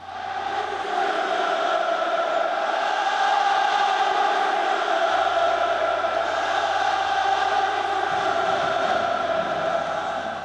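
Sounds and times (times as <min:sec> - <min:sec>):
football fans singing in stadium: 0:00.0 - 0:10.4.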